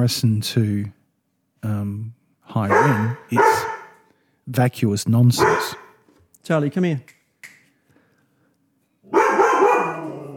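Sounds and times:
speech: 0:00.0 - 0:01.0, 0:01.6 - 0:03.8, 0:04.5 - 0:05.8, 0:06.4 - 0:07.2
dog barking: 0:02.7 - 0:04.0, 0:05.4 - 0:06.0, 0:09.1 - 0:10.3.

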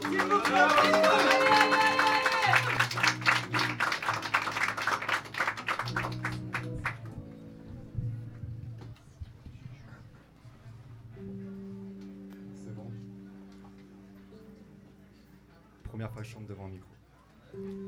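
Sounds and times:
encouraging audience applause: 0:00.0 - 0:07.1.

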